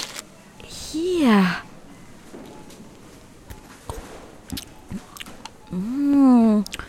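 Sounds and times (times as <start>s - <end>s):
speech: 0.9s - 1.7s
person chewing food: 3.9s - 5.6s.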